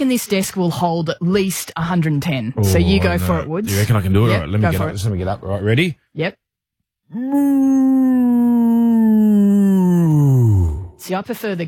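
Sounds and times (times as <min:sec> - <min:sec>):
speech: 0:00.0 - 0:06.4, 0:07.1 - 0:08.4, 0:11.0 - 0:11.6
person imitating a cow mooing: 0:02.6 - 0:03.2, 0:07.1 - 0:11.0.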